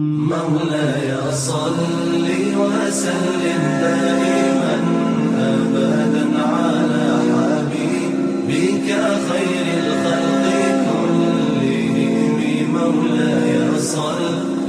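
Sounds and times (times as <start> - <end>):
Islamic naat singing: 0.2 - 14.6.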